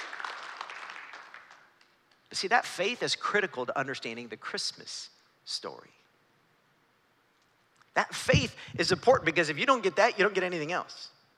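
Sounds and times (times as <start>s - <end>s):
audience clapping: 0.0s - 2.0s
speech: 2.4s - 6.0s, 8.0s - 11.2s.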